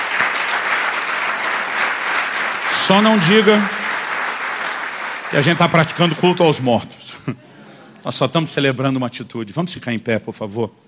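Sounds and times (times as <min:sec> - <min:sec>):
church congregation applauding: 0:00.0 - 0:06.9
speech: 0:02.8 - 0:03.8, 0:05.3 - 0:07.4, 0:08.0 - 0:10.8
laughter: 0:07.0 - 0:08.2.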